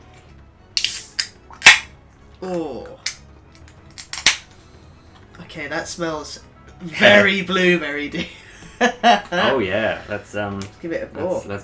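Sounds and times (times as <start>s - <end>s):
beer can being cracked open: 0.8s - 2.0s, 3.0s - 4.5s
speech: 2.4s - 3.0s, 5.6s - 11.6s
laughter: 8.2s - 10.1s.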